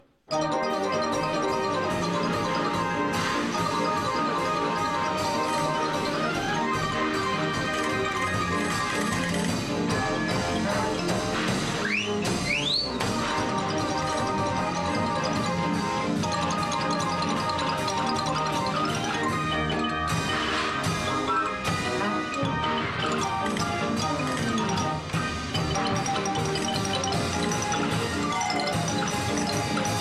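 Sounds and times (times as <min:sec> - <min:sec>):
cartoon instrument: 0:00.0 - 0:29.9.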